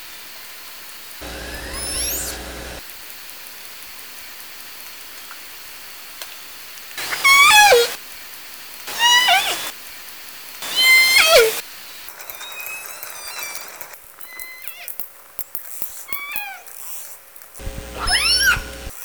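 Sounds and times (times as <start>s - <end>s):
Southern Resident killer whale pulsed calls: 1.2s - 2.8s, 7.0s - 8.0s, 8.9s - 9.7s, 10.6s - 11.6s.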